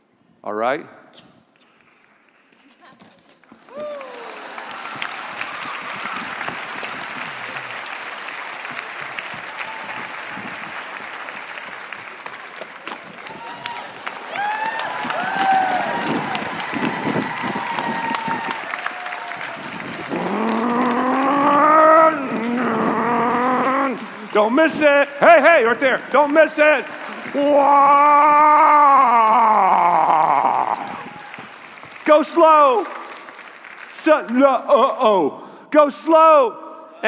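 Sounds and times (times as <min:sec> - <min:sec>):
speech: 0:00.4 - 0:01.3, 0:24.4 - 0:29.5, 0:32.1 - 0:32.9, 0:34.0 - 0:37.0
crowd applause: 0:03.5 - 0:34.9
whoops and cheering: 0:03.7 - 0:07.6, 0:08.3 - 0:11.2, 0:13.1 - 0:24.4, 0:27.1 - 0:31.6.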